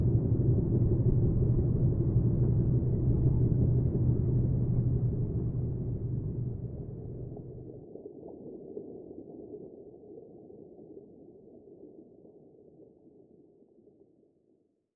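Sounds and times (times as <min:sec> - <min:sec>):
boat trolling engine passing by underwater: 0:00.0 - 0:07.8.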